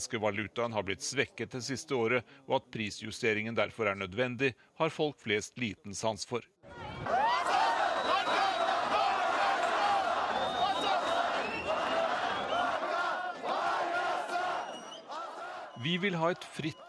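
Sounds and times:
speech: 0.0s - 7.2s, 15.8s - 16.8s
protest crowd shouting slogans: 6.7s - 16.8s.

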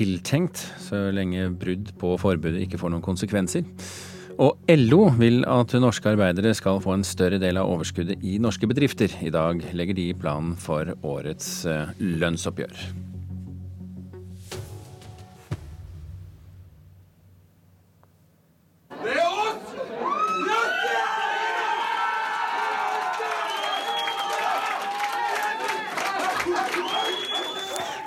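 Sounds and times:
speech: 0.0s - 13.0s
group of men cheering and shouting in restaurant: 18.9s - 28.0s.

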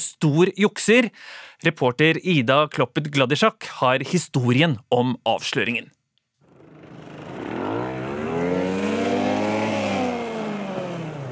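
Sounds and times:
speech: 0.2s - 6.0s
race car engine roaring past: 6.5s - 11.3s.

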